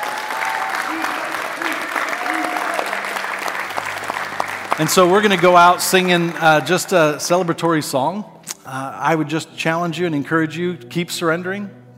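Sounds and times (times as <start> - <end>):
faint voices and cheers: 0.0 - 6.8
audience applause: 0.0 - 7.6
speech: 4.8 - 11.8.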